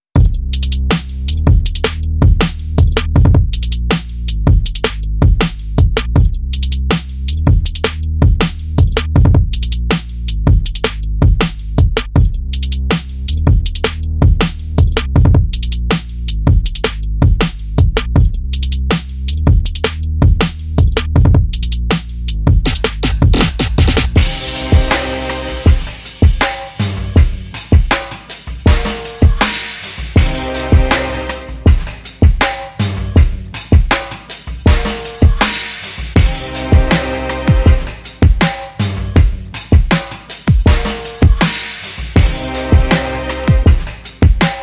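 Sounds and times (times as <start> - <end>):
drum and bass music: 0.0 - 44.6.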